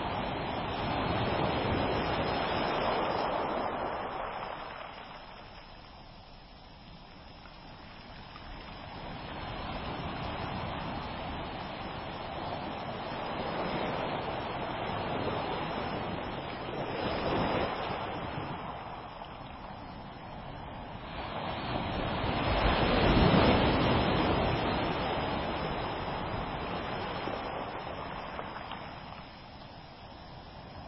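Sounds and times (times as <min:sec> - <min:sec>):
ocean waves: 0:00.0 - 0:30.8.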